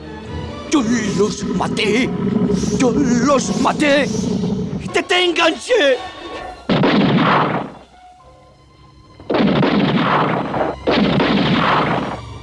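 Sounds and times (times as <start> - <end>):
speech: 0.8 - 6.2
gunshots: 6.7 - 7.8, 9.3 - 12.3.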